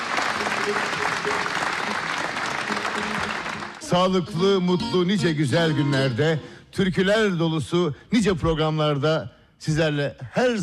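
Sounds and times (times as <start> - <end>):
audience applauding a folk music choir and its conductor: 0.0 - 4.2
speech: 0.7 - 1.6, 3.9 - 10.6.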